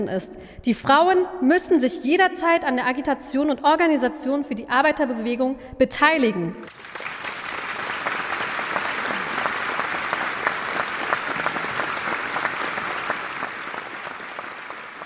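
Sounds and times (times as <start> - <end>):
speech: 0.0 - 7.1
audience applause: 6.7 - 15.0.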